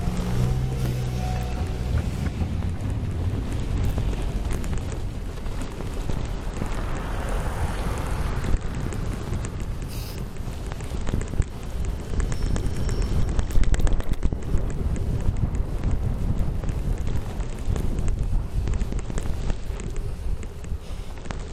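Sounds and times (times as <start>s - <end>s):
low engine drone: 0.0s - 10.4s
rumble of passing traffic on Hämeentie in Helsinki: 0.0s - 21.5s
wind buffeting the microphone after a snowstorm: 0.0s - 21.5s.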